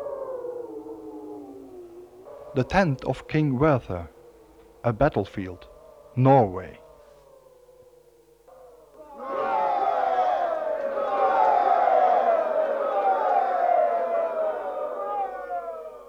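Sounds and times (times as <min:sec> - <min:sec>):
speech: 0:02.6 - 0:04.1, 0:04.8 - 0:06.8
crowd of men cheering: 0:04.9 - 0:06.8, 0:09.0 - 0:16.0.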